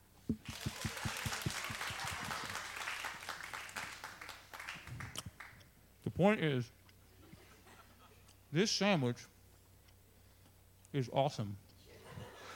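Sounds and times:
crowd applauding: 0:00.4 - 0:05.6
speech: 0:06.2 - 0:06.8, 0:08.5 - 0:09.3, 0:10.9 - 0:11.6.

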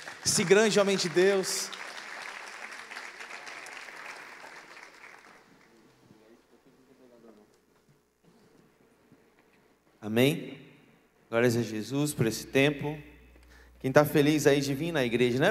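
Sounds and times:
audience applause: 0:00.0 - 0:06.0
speech: 0:00.2 - 0:01.8, 0:10.1 - 0:10.6, 0:11.3 - 0:13.1, 0:13.8 - 0:15.4.

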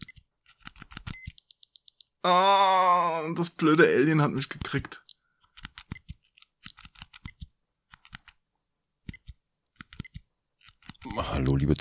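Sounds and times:
clicking and tapping on a new office computer keyboard: 0:00.0 - 0:01.4, 0:05.4 - 0:08.4, 0:09.0 - 0:11.2
speech: 0:02.2 - 0:05.0, 0:11.4 - 0:11.8.

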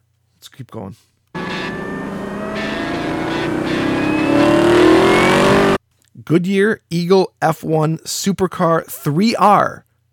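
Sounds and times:
speech: 0:00.4 - 0:01.2, 0:06.3 - 0:09.9
Camaro ZL1 1LE engine revving: 0:01.4 - 0:05.8.

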